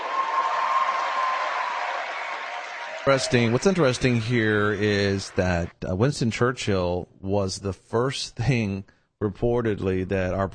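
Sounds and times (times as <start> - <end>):
audience applause: 0.0 - 5.7
speech: 3.1 - 10.5.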